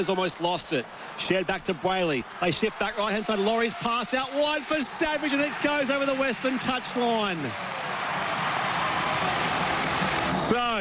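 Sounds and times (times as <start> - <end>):
speech: 0.0 - 7.8, 10.5 - 10.7
rugby league fans clapping: 2.4 - 10.7.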